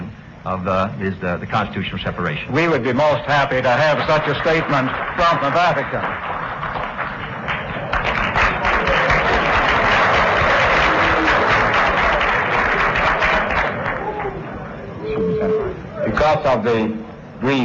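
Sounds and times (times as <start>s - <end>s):
speech: 0.4s - 6.4s, 16.4s - 17.6s
audience applause: 3.7s - 14.6s.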